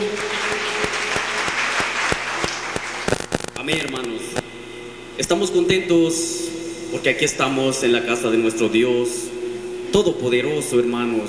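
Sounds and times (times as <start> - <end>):
audience clapping hands: 0.0 - 4.4
speech: 3.7 - 4.5, 5.2 - 9.3, 9.9 - 11.2.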